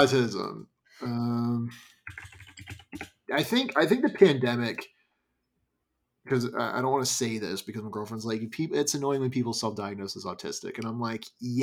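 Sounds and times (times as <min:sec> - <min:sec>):
speech: 0:00.0 - 0:01.9, 0:03.0 - 0:04.9, 0:06.3 - 0:11.6
computer keyboard keys clattering: 0:02.1 - 0:04.2.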